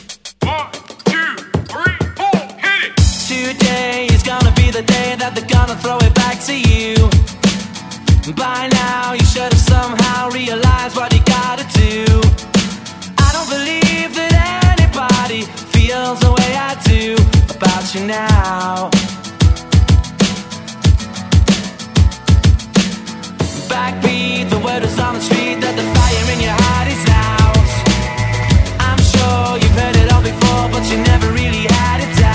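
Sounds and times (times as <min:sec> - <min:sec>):
party rock music mix: 0:00.4 - 0:32.3.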